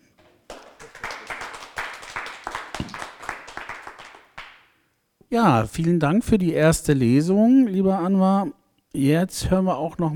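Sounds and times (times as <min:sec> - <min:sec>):
audience applause: 0:00.2 - 0:04.6
speech: 0:05.3 - 0:10.1.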